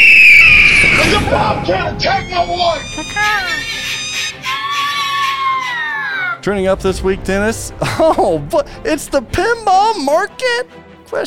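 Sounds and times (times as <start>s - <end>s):
crowd cheering and screaming sound effect: 0.0s - 1.7s, 2.3s - 6.4s
shrill whistles: 0.0s - 6.4s
speech: 1.3s - 3.8s, 6.4s - 11.2s.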